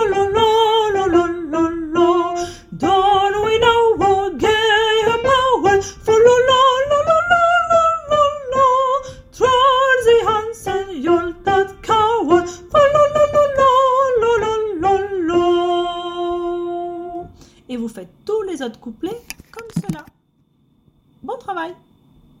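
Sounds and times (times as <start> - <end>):
soprano singing: 0.0 - 17.4.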